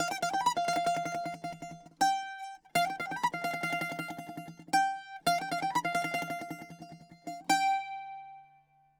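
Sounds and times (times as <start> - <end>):
bouzouki: 0.0 - 8.9.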